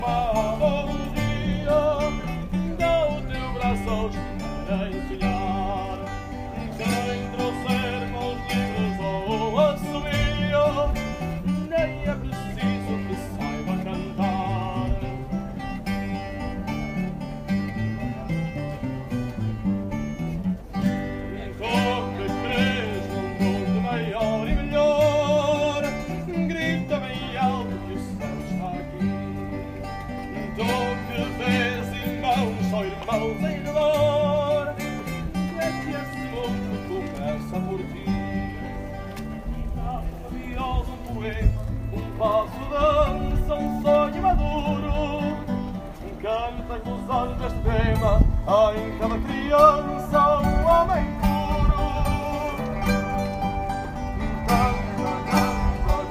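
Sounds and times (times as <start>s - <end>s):
fado outside Porto Cathedral in Porto: 0.0s - 56.0s.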